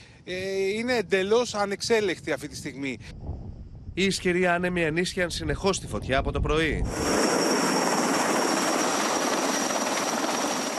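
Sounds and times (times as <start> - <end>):
speech: 0.2 - 3.3, 4.0 - 7.2
firefighting aircraft flying overhead: 6.8 - 10.7.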